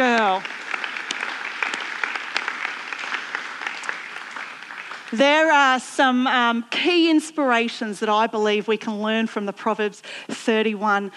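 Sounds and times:
crowd cheering: 0:00.0 - 0:05.4
speech: 0:05.1 - 0:11.1.

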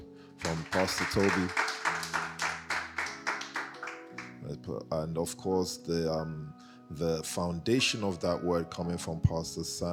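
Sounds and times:
crowd clapping rhythmically: 0:00.4 - 0:04.4
speech: 0:00.5 - 0:01.7, 0:04.5 - 0:09.9.

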